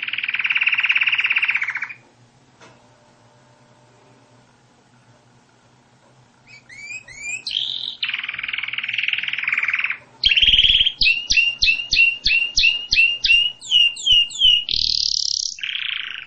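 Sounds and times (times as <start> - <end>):
canary song: 0.0 - 2.0, 6.4 - 16.2.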